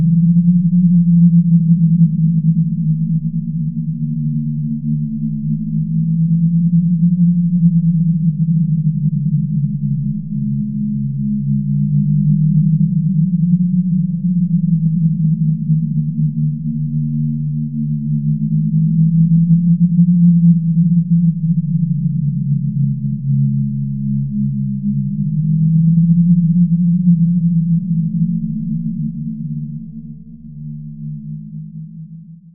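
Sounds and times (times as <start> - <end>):
spooky sine drone bed: 0.0 - 32.5.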